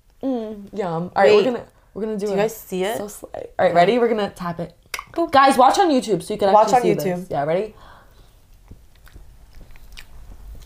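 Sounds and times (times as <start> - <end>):
speech: 0.2 - 7.9
biting into a light frosted cake: 8.5 - 10.6.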